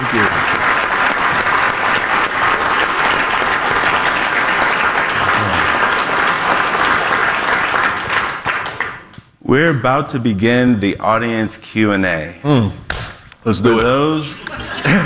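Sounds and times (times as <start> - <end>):
audience applauding a speaker at a live event: 0.0 - 9.2
speech: 0.1 - 0.5, 9.5 - 12.8, 13.4 - 15.0
laughter: 5.2 - 5.8, 13.7 - 15.0.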